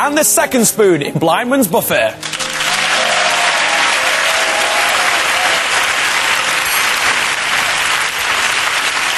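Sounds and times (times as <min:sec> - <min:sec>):
speech: 0:00.1 - 0:02.4
long applause from a TV audience: 0:02.2 - 0:09.1.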